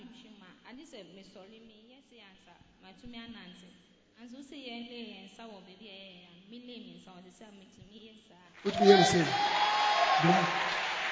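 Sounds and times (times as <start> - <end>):
speech: 0.7 - 10.8
audience clapping: 8.6 - 11.1
person calling out: 8.7 - 9.3.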